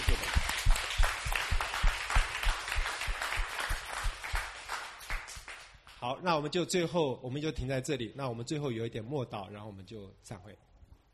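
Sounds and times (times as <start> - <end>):
audience applause: 0.0 - 5.6
speech: 6.0 - 10.7.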